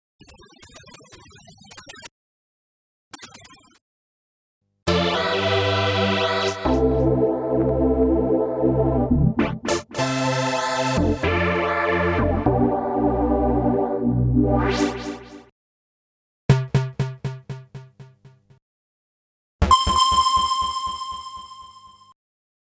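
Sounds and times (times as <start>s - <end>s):
Kaossilator synthesizer: 4.9s - 15.5s, 19.6s - 21.8s.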